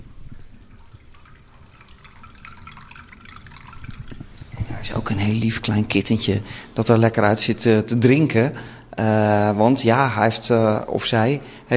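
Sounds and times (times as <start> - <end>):
water drips and splashes: 0.0 - 6.4
gently trickling water: 0.0 - 7.2
speech: 4.8 - 11.7.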